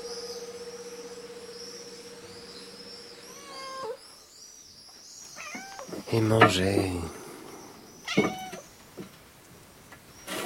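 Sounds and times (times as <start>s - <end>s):
faint hiss: 0.0s - 10.4s
cat meowing: 3.3s - 4.0s, 5.4s - 5.9s, 8.0s - 8.6s
speech: 6.1s - 7.2s.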